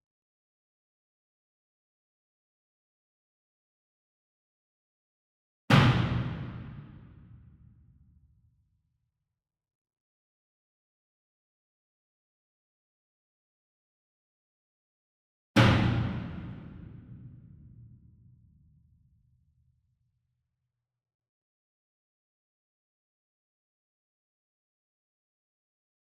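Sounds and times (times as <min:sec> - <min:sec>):
single 66 inch drum hit hard with a beater: 0:05.7 - 0:07.0, 0:15.6 - 0:17.5.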